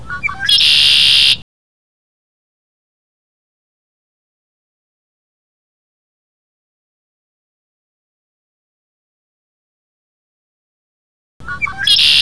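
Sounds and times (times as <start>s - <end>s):
birds of WA singing and calling: 0.0s - 1.4s, 11.4s - 12.2s.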